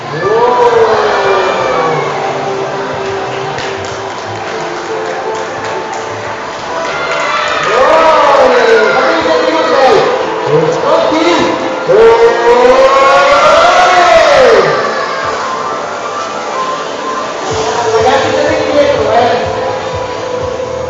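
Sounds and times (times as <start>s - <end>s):
children shrieking at a soap-bubble workshop: 0.0s - 2.8s, 6.8s - 17.5s
crowd chatter and shouting in a shopping centre: 0.0s - 20.8s.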